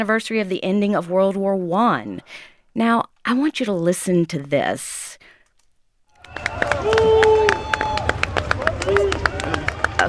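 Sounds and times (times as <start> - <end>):
speech: 0.0 - 5.2
crowd clapping: 6.1 - 10.0.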